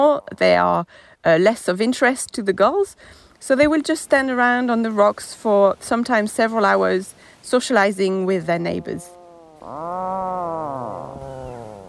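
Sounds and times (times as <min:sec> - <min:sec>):
speech: 0:00.0 - 0:11.5
puffin groaning call: 0:08.7 - 0:11.8.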